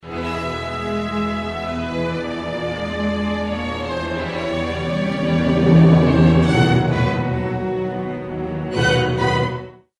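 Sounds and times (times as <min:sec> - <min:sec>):
orchestral music depicting the sea and a ship: 0:00.1 - 0:09.8.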